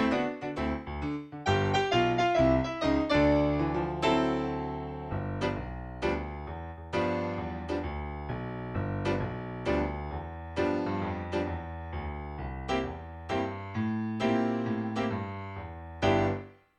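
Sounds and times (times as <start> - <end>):
blues piano track: 0.0 - 16.6.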